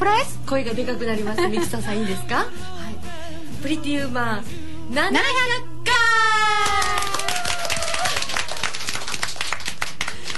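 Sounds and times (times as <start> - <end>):
speech: 0.0 - 2.9, 3.6 - 5.7
studio gallery audience applause: 6.6 - 10.3.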